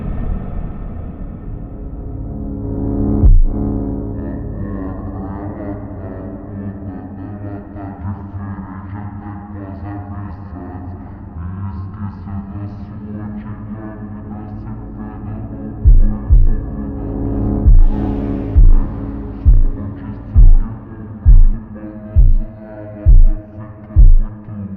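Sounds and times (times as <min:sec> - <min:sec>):
montagem super slowed reverb music: 0:00.1 - 0:07.8, 0:14.0 - 0:24.5.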